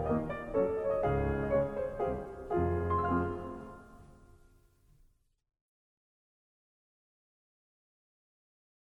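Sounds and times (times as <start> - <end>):
piano waltz in F minor: 0.0 - 4.6.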